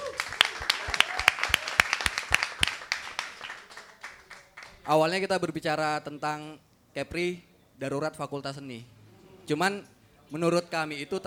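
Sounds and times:
audience applause: 0.0 - 4.9
speech: 4.9 - 11.2.

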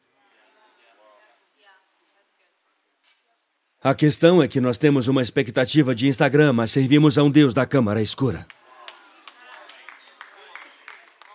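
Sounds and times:
speech: 3.8 - 8.6
people clapping sparsely: 8.4 - 11.3.

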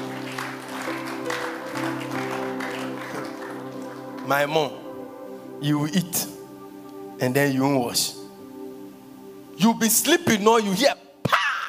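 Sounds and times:
audience clapping: 0.0 - 4.7
sustained musical chords: 0.0 - 10.7
speech: 4.3 - 4.8, 5.6 - 6.4, 7.2 - 8.2, 9.6 - 11.0.

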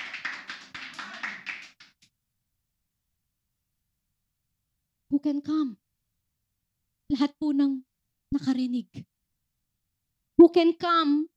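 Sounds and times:
church congregation clapping in praise of God: 0.0 - 2.1
speech: 5.2 - 5.9, 7.1 - 9.1, 10.4 - 11.3.

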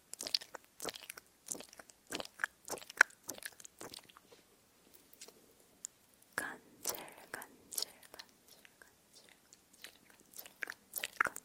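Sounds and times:
wet mouth clicks and smacks: 0.1 - 4.2, 6.8 - 11.4.

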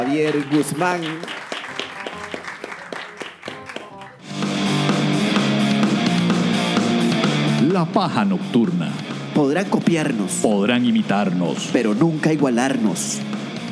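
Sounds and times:
small group applause: 0.0 - 4.3
loud music: 0.0 - 13.6
speech: 0.1 - 1.4, 7.8 - 13.4.

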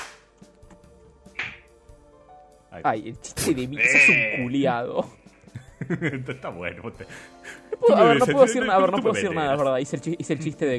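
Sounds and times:
scattered hand claps: 0.0 - 0.5
speech: 2.7 - 5.2, 5.9 - 10.7
laughter: 3.6 - 4.8, 5.5 - 10.6.

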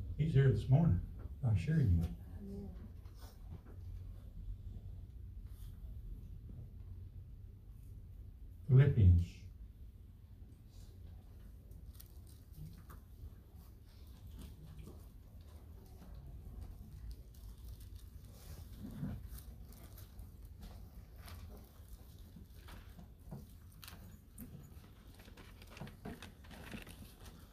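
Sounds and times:
speech: 0.2 - 2.8, 8.8 - 9.4
rustling book pages: 11.3 - 27.5.

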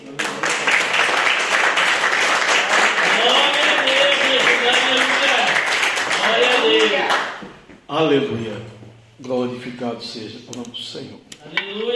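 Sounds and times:
audience applauding: 0.0 - 7.4
speech: 7.9 - 11.9.

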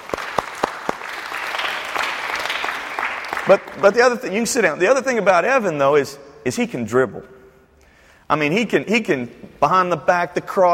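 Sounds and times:
audience applause in a church: 0.0 - 3.9
speech: 3.5 - 7.4, 8.3 - 10.7.

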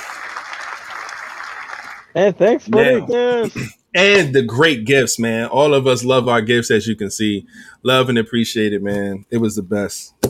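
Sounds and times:
audience applause: 0.0 - 2.2
speech: 2.1 - 10.2.

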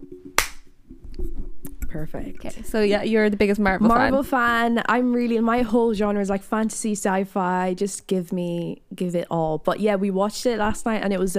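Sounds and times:
single hand clap: 0.4 - 0.7
speech: 2.0 - 11.3.

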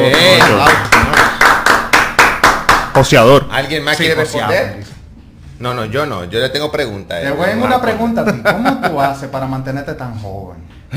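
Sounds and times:
applause: 0.0 - 3.0
speech: 3.0 - 5.0, 5.6 - 10.9.

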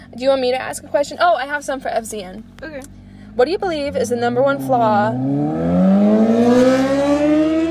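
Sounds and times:
speech: 0.1 - 6.6
motorcycle driving past in a park: 3.1 - 7.6.

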